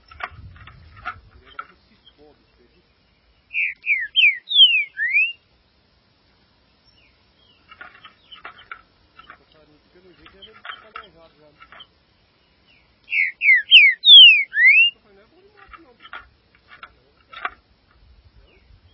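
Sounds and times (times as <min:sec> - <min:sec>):
green-winged saltator whistled song: 0:03.5 - 0:05.4, 0:13.1 - 0:15.0.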